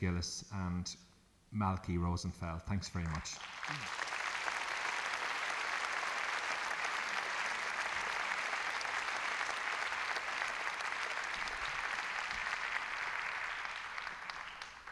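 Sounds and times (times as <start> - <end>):
speech: 0.0 - 4.0
audience applause: 3.0 - 14.8.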